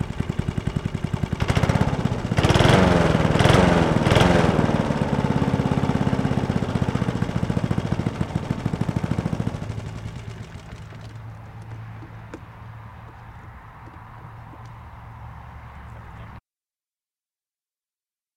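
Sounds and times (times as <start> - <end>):
lawn mower: 0.0 - 11.8.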